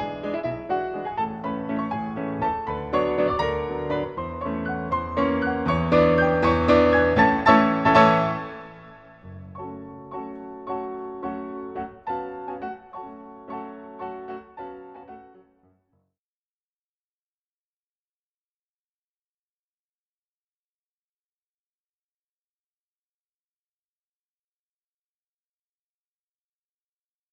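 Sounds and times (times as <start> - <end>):
waltz music: 0.0 - 15.5.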